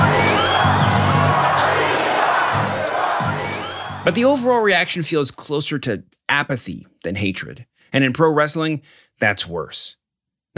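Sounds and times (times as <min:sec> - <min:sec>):
wrestling crowd chanting insults: 0:00.0 - 0:04.2
speech: 0:04.0 - 0:10.0.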